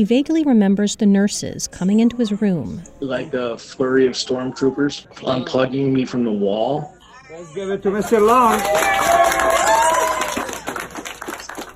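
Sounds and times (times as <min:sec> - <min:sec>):
speech: 0:00.0 - 0:09.4
hospital staff cheering as a patient leaves the ICU: 0:07.9 - 0:11.7
hospital staff clapping: 0:08.0 - 0:11.7.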